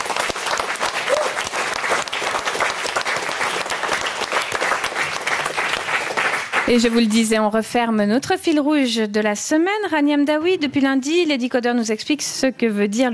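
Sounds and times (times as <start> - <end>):
audience applause: 0.0 - 7.2
speech: 6.7 - 13.1.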